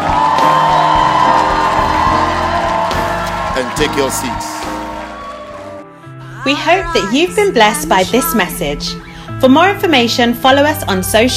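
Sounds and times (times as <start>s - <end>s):
crowd clapping: 0.0s - 5.9s
speech: 3.6s - 4.5s, 6.4s - 11.3s.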